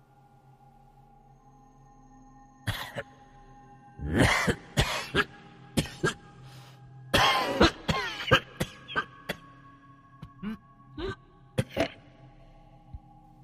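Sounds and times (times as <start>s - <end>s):
violent hacking coughs from a room where a corpse is laid out: 2.7s - 3.0s, 4.1s - 6.2s, 7.1s - 9.5s, 10.2s - 12.0s.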